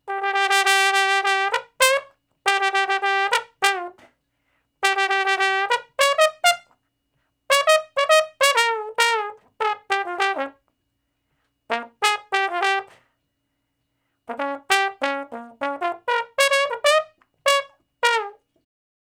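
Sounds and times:
trombone in B flat: 0:00.0 - 0:04.1, 0:04.8 - 0:06.7, 0:07.5 - 0:10.6, 0:11.7 - 0:13.0, 0:14.3 - 0:18.4.

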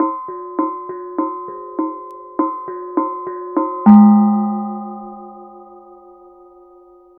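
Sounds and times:
kenong gong: 0:02.6 - 0:06.9.

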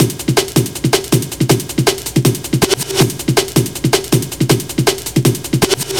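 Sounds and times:
drum and bass drum loop: 0:00.0 - 0:05.9.

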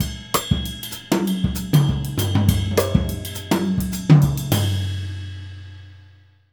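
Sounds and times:
jazz music: 0:00.0 - 0:05.1.

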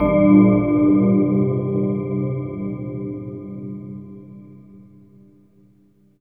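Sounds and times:
synth bells: 0:00.0 - 0:03.2.

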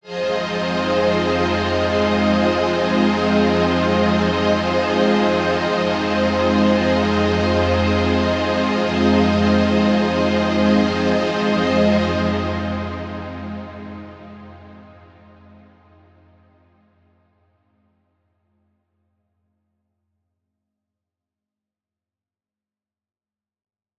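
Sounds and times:
synth pad in F: 0:00.0 - 0:16.6.

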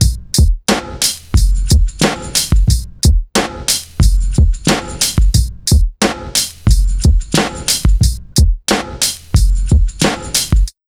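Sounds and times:
electro beat at 90 BPM: 0:00.0 - 0:10.8.

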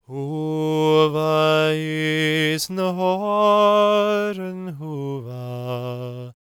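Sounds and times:
Gaelic singing voices: 0:00.0 - 0:06.4.

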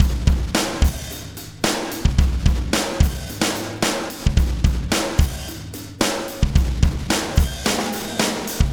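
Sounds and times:
beat from processed drumkits: 0:00.0 - 0:08.7.

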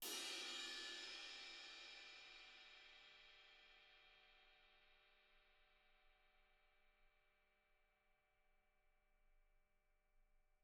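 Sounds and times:
jazz ride cymbal: 0:00.0 - 0:03.2.

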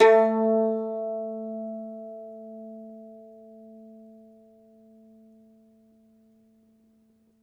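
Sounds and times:
mandolin plucked strings: 0:00.0 - 0:06.5.

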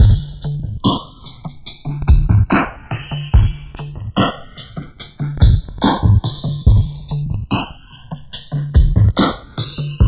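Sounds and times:
dark filtered trip-hop music: 0:00.0 - 0:10.0.

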